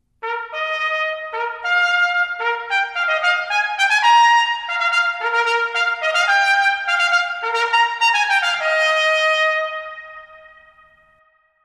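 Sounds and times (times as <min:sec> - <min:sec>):
fanfare: 0:00.2 - 0:10.2.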